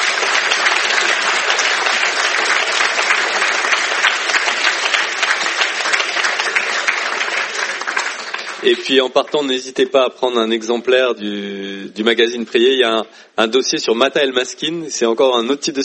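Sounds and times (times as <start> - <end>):
audience applause: 0.0 - 9.6
speech: 8.6 - 15.8.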